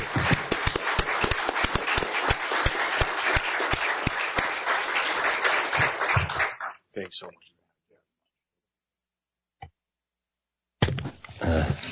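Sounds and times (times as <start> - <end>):
audience applause: 0.0 - 6.8.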